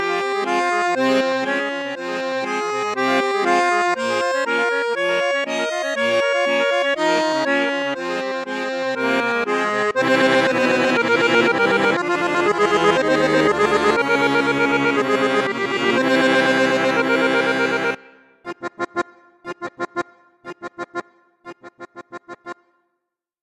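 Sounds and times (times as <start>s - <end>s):
accordion playing bassoon register in low octave: 0.0s - 22.8s.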